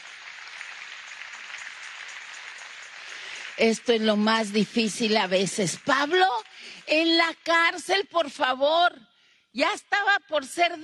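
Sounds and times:
audience applauding: 0.0s - 7.0s
speech: 3.6s - 10.8s.

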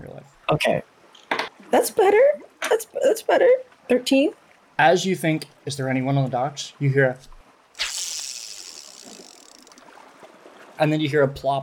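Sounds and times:
speech: 0.5s - 0.9s, 1.7s - 7.3s, 10.8s - 11.6s
fishing reel whizzing as line spins out: 7.8s - 10.0s.

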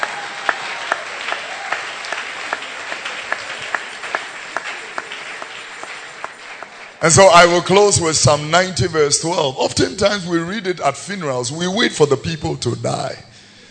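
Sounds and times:
audience clapping hands: 0.0s - 9.0s
speech: 7.0s - 13.3s.

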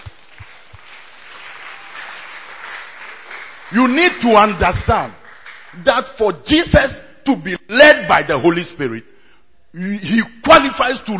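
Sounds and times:
crowd clapping: 0.0s - 6.4s
speech: 3.7s - 5.2s, 5.8s - 11.1s.

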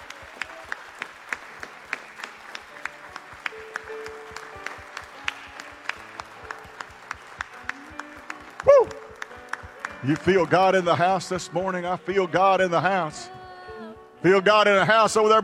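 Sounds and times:
audience applause: 0.0s - 12.0s
speech: 10.0s - 13.4s, 14.2s - 15.4s.

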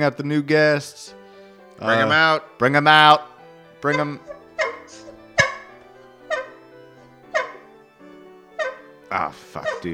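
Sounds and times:
speech: 0.0s - 1.2s, 1.8s - 4.4s, 9.1s - 9.9s
goose honking: 3.8s - 7.8s, 8.5s - 8.9s, 9.6s - 9.9s.

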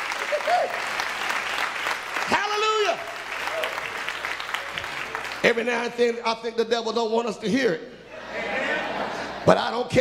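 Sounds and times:
audience clapping hands: 0.0s - 6.2s
speech: 5.4s - 8.0s, 9.4s - 9.9s
laughter: 7.9s - 9.8s.

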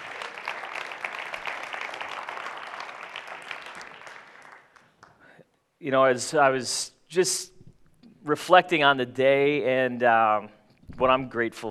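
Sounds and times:
applause welcoming a speaker at an event: 0.0s - 5.3s
speech: 5.8s - 7.5s, 8.2s - 11.6s.

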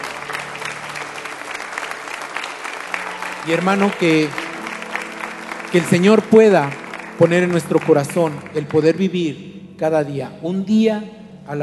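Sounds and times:
audience applauding: 0.0s - 9.3s
speech: 3.4s - 4.4s, 5.7s - 11.6s.

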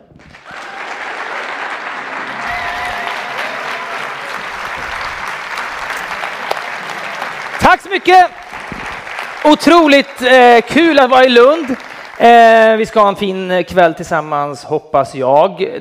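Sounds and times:
audience applause welcoming moderator on stage: 0.2s - 12.8s
speech: 7.7s - 8.4s, 9.4s - 15.8s.

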